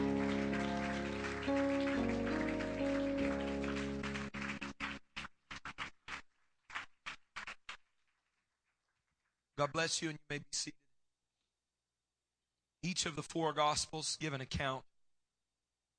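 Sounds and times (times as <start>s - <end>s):
sustained musical tones: 0.0s - 5.0s
audience clapping hands: 0.0s - 9.3s
speech: 9.6s - 10.8s, 12.8s - 14.9s.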